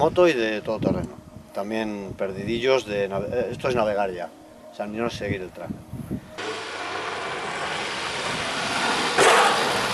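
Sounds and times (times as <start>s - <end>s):
speech: 0.0s - 6.5s
tires driving through sand: 6.4s - 9.9s.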